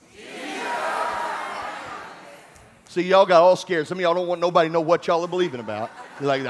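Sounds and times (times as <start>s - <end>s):
audience shouting together: 0.0s - 2.5s
speech: 2.9s - 6.4s
laughter: 4.7s - 6.4s.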